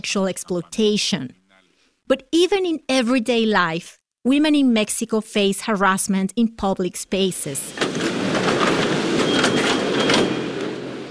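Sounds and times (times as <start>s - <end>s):
speech: 0.0s - 1.4s, 2.1s - 8.2s
subway train rumbling through a Mexico City station: 7.7s - 11.0s.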